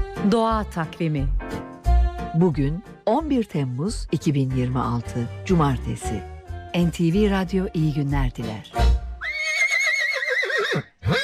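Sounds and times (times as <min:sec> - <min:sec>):
speech: 0:00.2 - 0:01.6, 0:02.3 - 0:08.8
horse neighing: 0:09.2 - 0:11.2.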